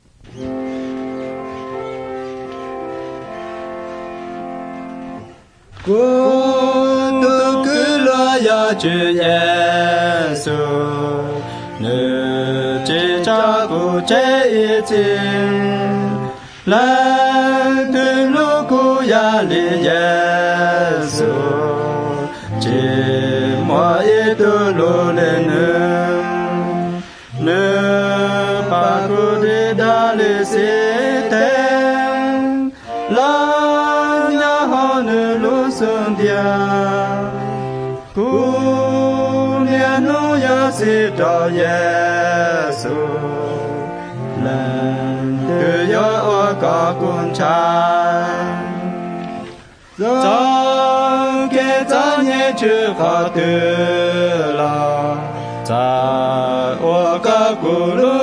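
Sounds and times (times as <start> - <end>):
White Hmong songs: 0.0 - 58.2.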